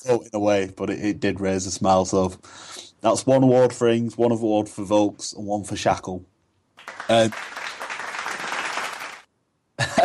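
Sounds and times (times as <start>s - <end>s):
speech: 0.0s - 7.6s
applause for award winners: 6.8s - 9.3s.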